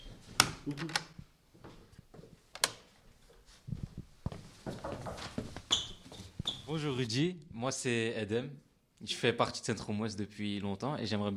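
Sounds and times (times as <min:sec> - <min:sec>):
door opening and closing: 0:00.0 - 0:01.2
speech: 0:00.7 - 0:01.1, 0:06.7 - 0:11.3
shuffling: 0:01.5 - 0:07.1.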